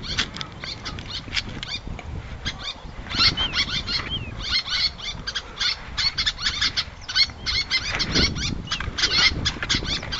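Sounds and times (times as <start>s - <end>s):
little tern Sterna albifrons calling: 0.0s - 10.1s.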